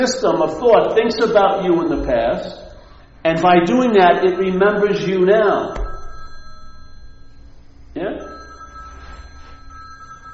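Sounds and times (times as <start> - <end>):
speech: 0.0 - 2.6, 3.2 - 5.8
mobile phone ringing: 3.8 - 10.3.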